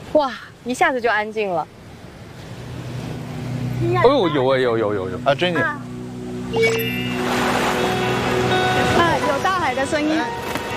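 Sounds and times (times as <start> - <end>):
speech: 0.1 - 1.8, 3.8 - 5.9, 6.5 - 7.6, 9.7 - 10.5
ocean waves heard through a seashell, hollow rushing roar: 2.0 - 10.0.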